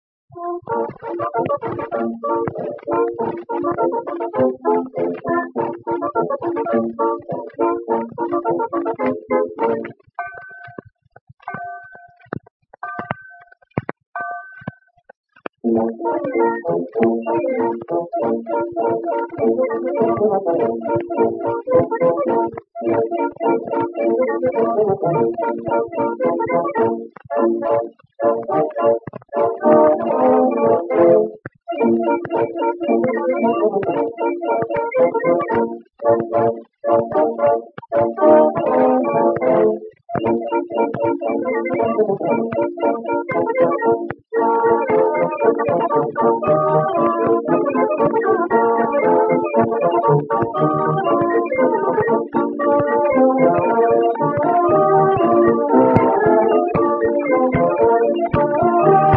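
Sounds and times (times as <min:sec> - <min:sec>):
orchestra: 0:00.4 - 0:10.6, 0:15.6 - 0:59.1.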